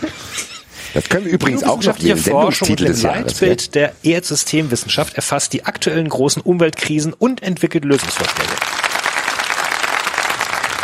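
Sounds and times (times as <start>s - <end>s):
speech: 1.0s - 8.7s
applause at the drei90 Awards ceremony for the umbrella association: 7.9s - 10.8s.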